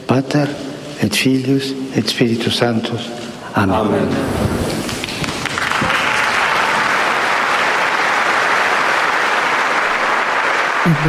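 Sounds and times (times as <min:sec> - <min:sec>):
speech: 0:00.1 - 0:04.8, 0:10.8 - 0:11.0
full audience applause in the sixth Pál hall: 0:04.8 - 0:11.0.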